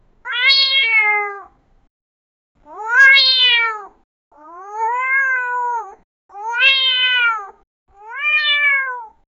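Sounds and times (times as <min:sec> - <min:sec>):
cat: 0:00.3 - 0:01.6, 0:02.6 - 0:09.2.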